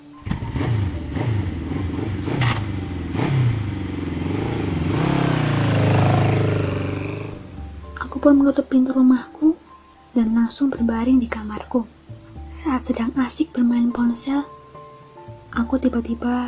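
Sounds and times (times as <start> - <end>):
motorcycle riding away: 0.2 - 8.6
speech: 8.3 - 9.5, 10.2 - 14.6, 15.6 - 16.4.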